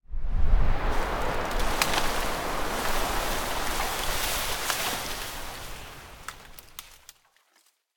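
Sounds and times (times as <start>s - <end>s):
foliage ambience: 0.5s - 7.7s.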